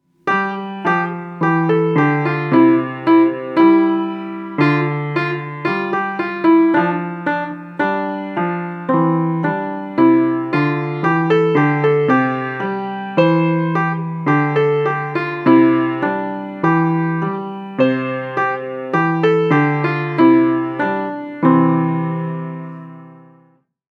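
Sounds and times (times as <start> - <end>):
piano version of a German children's song: 0.0 - 23.7.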